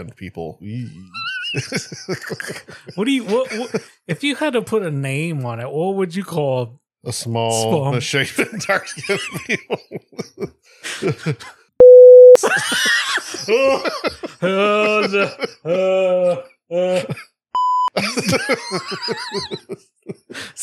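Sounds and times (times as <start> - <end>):
speech: 0.0 - 11.6, 12.4 - 17.3, 18.0 - 20.6
laughter: 0.7 - 4.6, 7.5 - 11.5, 12.4 - 17.2, 18.0 - 20.6
loud steady censor beeps: 11.8 - 12.4, 17.6 - 17.9.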